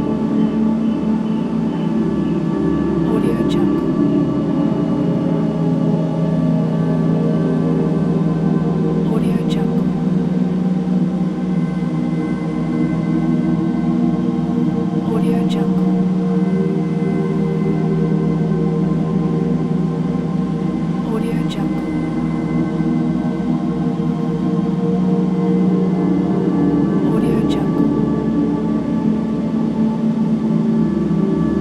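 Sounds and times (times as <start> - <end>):
dark ambient soundscape: 0.0 - 31.5.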